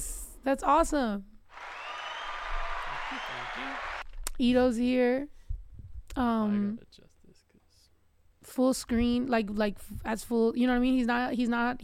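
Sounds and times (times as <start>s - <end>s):
speech: 0.4s - 1.3s, 3.6s - 5.4s, 6.2s - 7.1s, 8.4s - 11.8s
applause sound effect: 1.5s - 4.0s.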